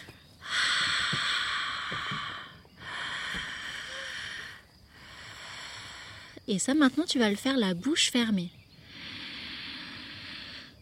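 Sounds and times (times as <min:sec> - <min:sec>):
breathy open-mouthed exhales in a vocal breathing exercise: 0:00.0 - 0:06.4, 0:08.8 - 0:10.8
speech: 0:06.5 - 0:08.6.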